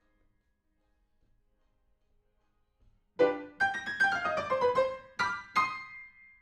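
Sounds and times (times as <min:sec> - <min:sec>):
piano: 0:03.2 - 0:06.4.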